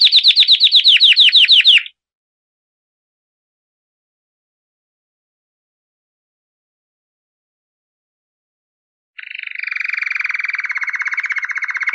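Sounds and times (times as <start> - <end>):
canary buzzy trill of fast repeated notes: 0.0 - 1.9, 9.2 - 11.9.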